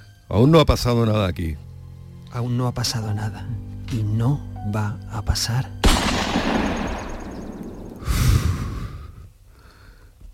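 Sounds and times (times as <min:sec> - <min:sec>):
speech: 0:00.3 - 0:01.7, 0:02.3 - 0:05.8
gunshot sound effect in a Spanish-language radio drama: 0:05.8 - 0:08.1
breathy rustling noise: 0:08.0 - 0:10.3.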